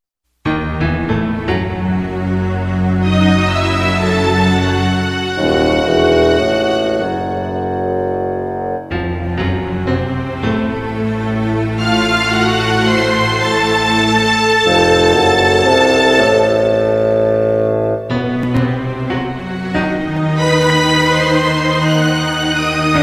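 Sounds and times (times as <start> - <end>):
mysterious orchestral music: 1.2 - 23.0.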